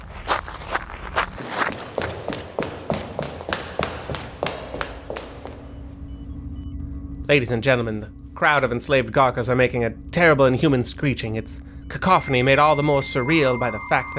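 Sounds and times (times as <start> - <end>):
running footsteps: 0.0 - 6.2
low hum: 0.0 - 14.1
speech: 7.3 - 14.1.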